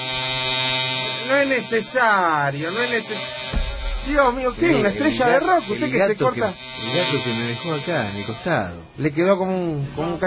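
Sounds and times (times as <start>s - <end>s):
electric hair clippers buzzing during haircut: 0.0s - 8.6s
speech: 1.3s - 3.4s, 4.0s - 10.2s.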